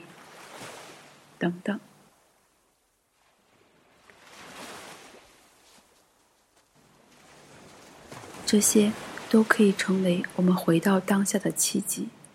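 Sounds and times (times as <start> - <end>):
ocean waves: 0.0 - 12.3
speech: 1.4 - 1.9, 8.5 - 12.2.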